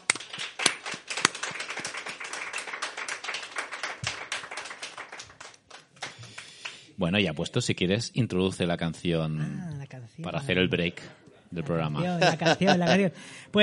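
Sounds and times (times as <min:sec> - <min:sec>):
hand claps: 0:00.0 - 0:06.8
speech: 0:07.0 - 0:13.6
laughter: 0:11.9 - 0:13.2.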